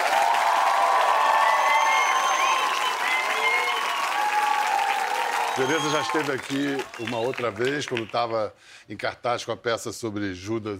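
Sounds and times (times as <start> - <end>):
audience applause: 0.0 - 8.3
speech: 5.6 - 10.7.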